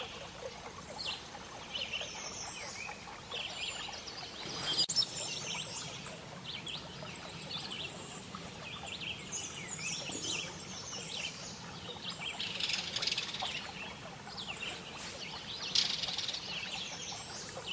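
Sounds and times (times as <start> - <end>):
background hiss: 0.0 - 17.7
bird chorus twittering: 0.0 - 17.7.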